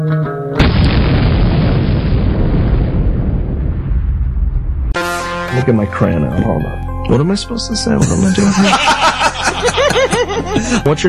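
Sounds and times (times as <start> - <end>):
loud explosion with rumbling roar: 0.6 - 5.2
speech: 5.6 - 11.0
laughter: 8.0 - 11.0.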